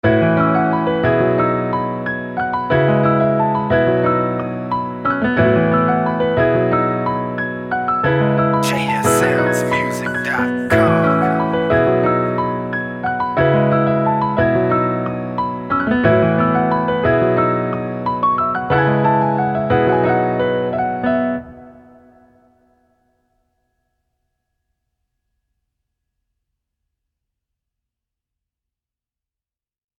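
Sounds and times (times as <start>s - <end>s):
piano music: 0.3s - 22.6s.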